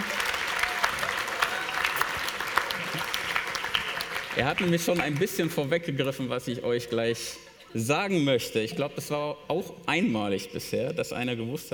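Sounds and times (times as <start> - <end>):
audience applause: 0.0 - 5.6
speech: 4.4 - 11.7.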